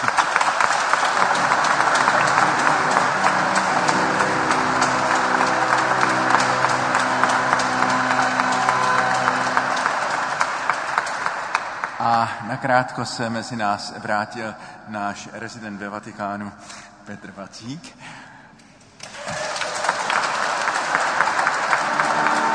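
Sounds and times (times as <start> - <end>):
audience applause: 0.0 - 12.5, 19.0 - 22.5
speech: 12.2 - 18.0.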